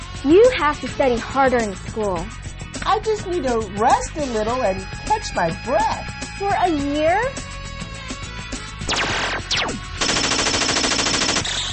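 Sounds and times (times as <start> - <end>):
speech: 0.2 - 7.5
gunfire from a video game: 8.9 - 11.6.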